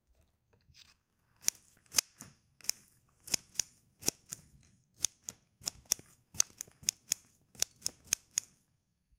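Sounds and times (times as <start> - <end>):
chopping potatoes: 1.4 - 8.5.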